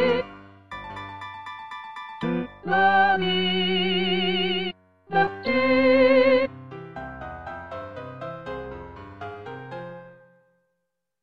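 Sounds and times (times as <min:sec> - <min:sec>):
soprano singing: 0:00.0 - 0:00.3, 0:02.2 - 0:06.5.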